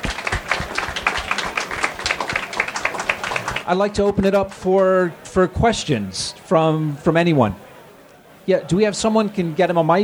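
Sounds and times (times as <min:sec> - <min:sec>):
audience applause for a panel of speakers: 0:00.0 - 0:03.7
speech: 0:03.7 - 0:07.7, 0:08.5 - 0:10.0.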